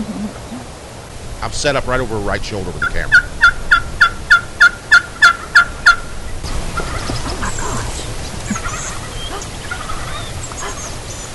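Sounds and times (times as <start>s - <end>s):
faint bird calls: 0.0s - 0.8s, 2.8s - 11.3s
speech: 1.4s - 3.4s
wild turkey gobbling: 2.7s - 11.0s.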